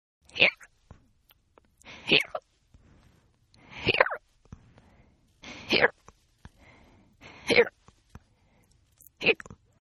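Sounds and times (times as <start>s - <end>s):
woman hiccuping: 2.1s - 2.4s, 3.8s - 4.2s, 9.2s - 9.5s.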